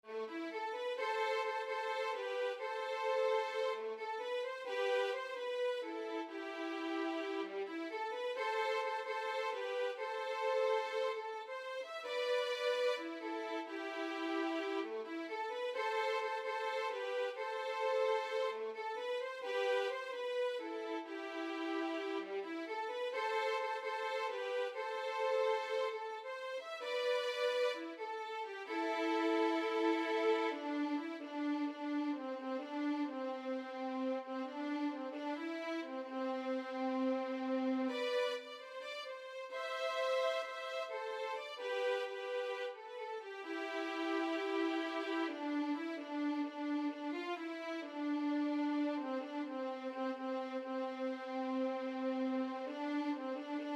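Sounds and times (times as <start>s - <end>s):
violin: 0.0s - 53.7s.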